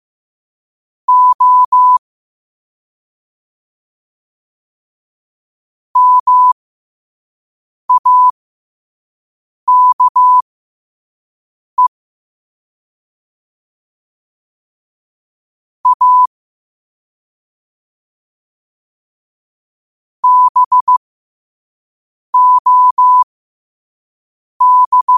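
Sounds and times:
morse code at 5 wpm: 1.1s - 2.0s, 6.0s - 6.6s, 7.9s - 8.3s, 9.7s - 10.4s, 15.8s - 16.3s, 20.2s - 21.0s, 22.4s - 23.2s, 24.6s - 25.1s.

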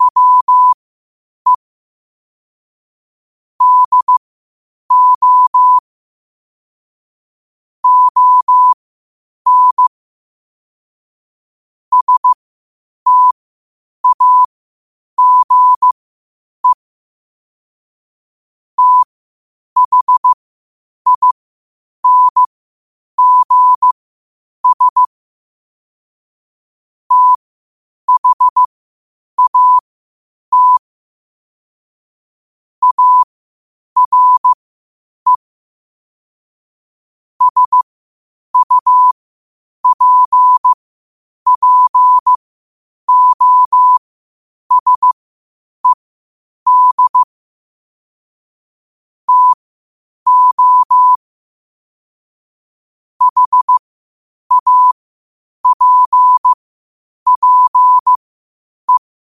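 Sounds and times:
morse code at 5 wpm: 0.0s - 0.8s, 3.6s - 4.2s, 4.9s - 5.8s, 7.8s - 8.8s, 9.5s - 9.9s, 11.9s - 12.4s, 13.1s - 13.4s, 14.0s - 14.5s, 15.2s - 15.9s, 18.8s - 19.1s, 19.8s - 20.4s, 21.1s - 21.4s, 22.0s - 22.5s, 23.2s - 24.0s, 24.6s - 25.1s, 27.1s - 27.4s, 28.1s - 28.7s, 29.4s - 29.8s, 30.5s - 30.9s, 32.8s - 33.3s, 34.0s - 34.6s, 35.3s - 35.5s, 37.4s - 37.9s, 38.6s - 39.2s, 39.8s - 40.8s, 41.5s - 42.5s, 43.1s - 44.0s, 44.7s - 45.2s, 46.7s - 47.3s, 49.3s - 49.6s, 50.3s - 51.2s, 53.2s - 53.8s, 54.5s - 55.0s, 55.6s - 56.6s, 57.3s - 58.2s.

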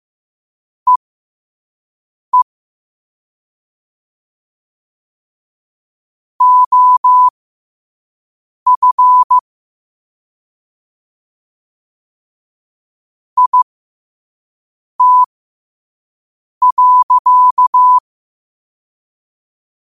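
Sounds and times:
morse code at 5 wpm: 6.4s - 7.3s, 8.7s - 9.4s, 13.4s - 13.6s, 15.0s - 15.3s, 16.6s - 18.0s.

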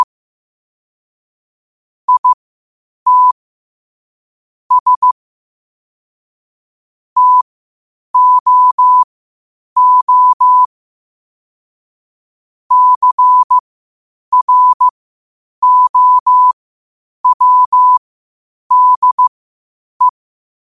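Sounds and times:
morse code at 5 wpm: 2.1s - 2.4s, 3.1s - 3.4s, 4.7s - 5.2s, 7.2s - 7.4s, 8.2s - 9.1s, 9.8s - 10.7s, 12.7s - 13.6s, 14.3s - 14.9s, 15.6s - 16.6s, 17.2s - 18.0s, 18.7s - 19.3s.

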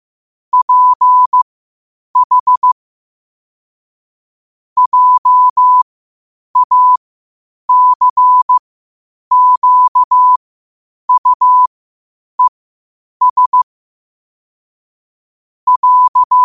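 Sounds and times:
morse code at 5 wpm: 0.6s - 1.4s, 2.2s - 2.8s, 4.8s - 5.8s, 6.6s - 7.0s, 7.7s - 8.6s, 9.3s - 10.4s, 11.1s - 11.7s, 13.2s - 13.7s, 15.7s - 16.4s.

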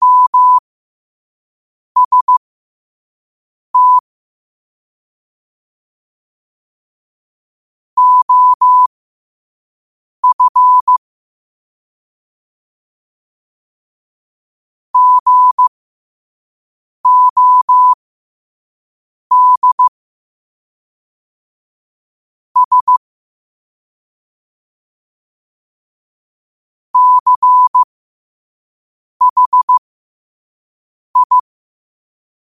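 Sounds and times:
morse code at 5 wpm: 0.0s - 0.6s, 2.0s - 2.4s, 3.8s - 4.0s, 8.0s - 8.9s, 10.2s - 11.0s, 15.0s - 15.7s, 17.0s - 18.0s, 19.3s - 19.9s, 22.6s - 23.0s, 27.0s - 27.9s, 29.2s - 29.8s, 31.2s - 31.4s.

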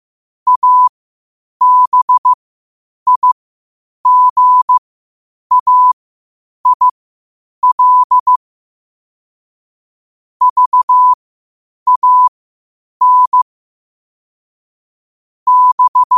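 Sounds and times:
morse code at 5 wpm: 0.5s - 0.9s, 1.6s - 2.4s, 3.1s - 3.4s, 4.0s - 4.8s, 5.5s - 6.0s, 6.6s - 7.0s, 7.6s - 8.4s, 10.4s - 11.2s, 11.9s - 12.3s, 13.0s - 13.4s, 15.5s - 16.1s.

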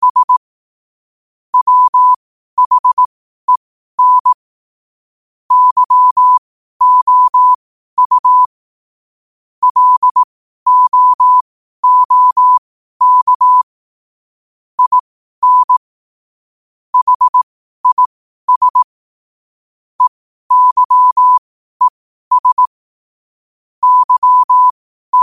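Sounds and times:
morse code at 5 wpm: 0.0s - 0.4s, 1.6s - 4.4s, 5.5s - 8.5s, 9.6s - 13.7s, 14.8s - 15.8s, 17.0s - 18.9s, 20.0s - 22.8s, 23.8s - 25.2s.

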